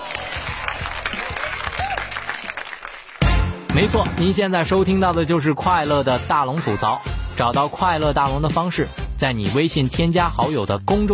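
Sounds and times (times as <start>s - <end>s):
applause: 0.0s - 3.5s
speech: 3.8s - 11.1s.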